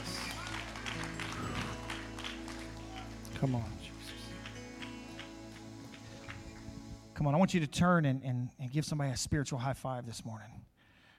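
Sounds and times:
audience clapping: 0.0 - 6.8
speech: 3.4 - 3.9, 7.2 - 10.7.

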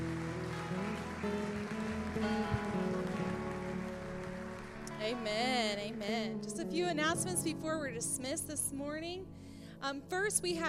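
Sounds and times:
audience clapping hands: 0.0 - 6.1
speech: 5.1 - 10.6.

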